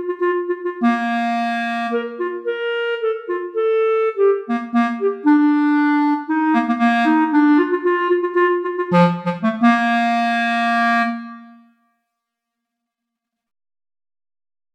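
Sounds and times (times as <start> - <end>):
festive song: 0.0 - 11.7.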